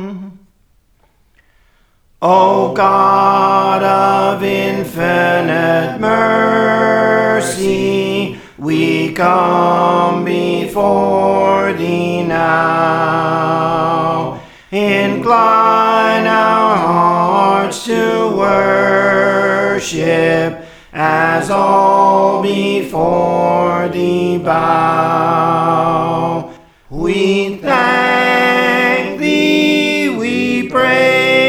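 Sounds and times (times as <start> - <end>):
soprano singing songs: 2.2 - 31.4.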